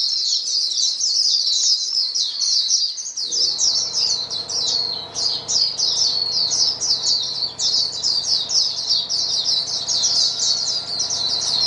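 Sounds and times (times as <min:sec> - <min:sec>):
white-eye chorus twittering: 0:01.1 - 0:11.6
faint low hum: 0:03.2 - 0:11.6.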